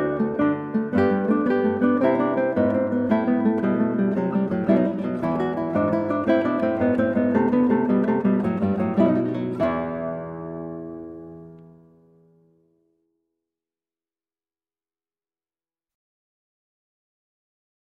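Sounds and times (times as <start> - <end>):
trio sonata vivace on guitar: 0.0 - 13.2.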